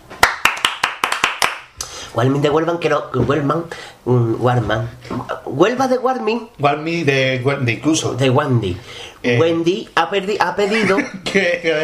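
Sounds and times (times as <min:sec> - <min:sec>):
hand clapping applause: 0:00.1 - 0:01.7
speech: 0:02.2 - 0:11.8
laughter: 0:10.6 - 0:11.8.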